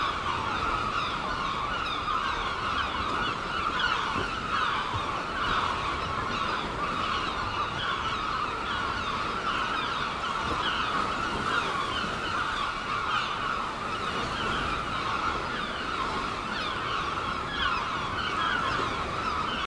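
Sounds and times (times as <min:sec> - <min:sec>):
many gulls calling together at Seaton: 0:00.0 - 0:19.6.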